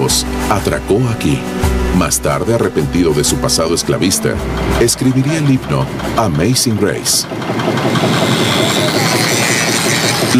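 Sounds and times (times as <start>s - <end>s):
scenic railway locomotive engine idling: 0.0s - 10.3s
speech: 0.1s - 10.3s.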